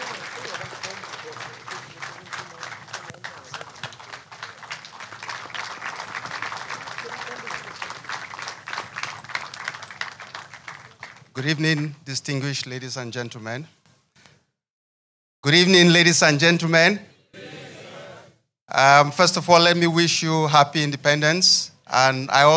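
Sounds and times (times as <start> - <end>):
crowd applauding: 0.0 - 11.9
speech: 11.4 - 13.8, 15.5 - 17.1, 18.8 - 22.5.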